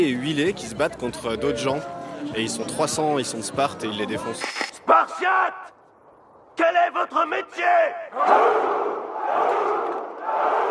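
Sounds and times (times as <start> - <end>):
speech: 0.0 - 5.7, 6.6 - 10.6
crowd of protesters shouting: 8.1 - 10.7.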